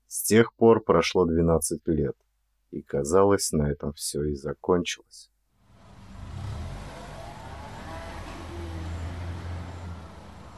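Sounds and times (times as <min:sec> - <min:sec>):
speech: 0:00.1 - 0:05.3
car engine droning while driving to the edge of a forest: 0:05.7 - 0:10.5.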